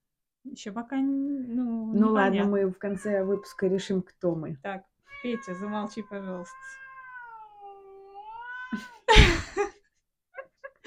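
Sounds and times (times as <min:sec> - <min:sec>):
speech: 0:00.4 - 0:06.8, 0:08.7 - 0:09.8
black-and-white cat meowing: 0:02.8 - 0:04.0, 0:05.1 - 0:09.1.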